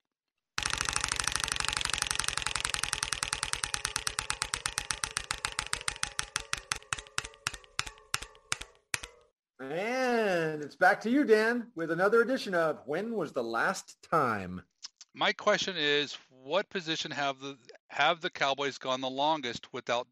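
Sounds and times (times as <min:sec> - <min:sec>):
spun prize wheel ratcheting clicks: 0:00.6 - 0:09.3
speech: 0:09.6 - 0:09.9, 0:10.6 - 0:20.1.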